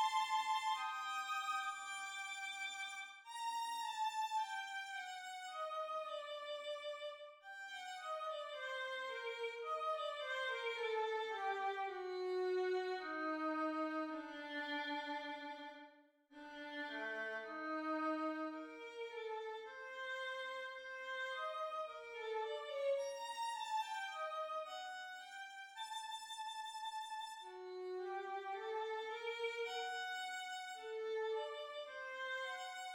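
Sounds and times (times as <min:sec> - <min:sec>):
violin solo: 0:00.0 - 0:32.9.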